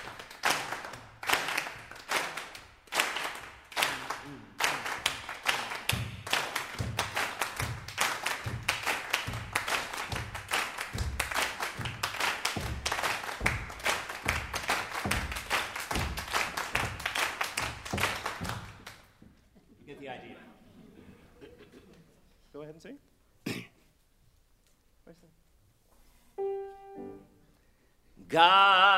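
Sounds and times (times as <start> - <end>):
group clapping on beats two and four: 0.0 - 19.2
speech: 28.3 - 28.8.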